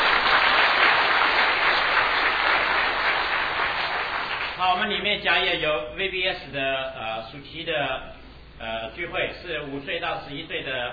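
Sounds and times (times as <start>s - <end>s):
church congregation applauding: 0.0s - 4.8s
speech: 4.9s - 10.9s.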